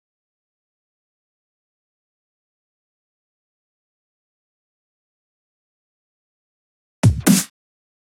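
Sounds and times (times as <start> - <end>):
drum loop: 7.0 - 7.5
snare fill: 7.0 - 7.5.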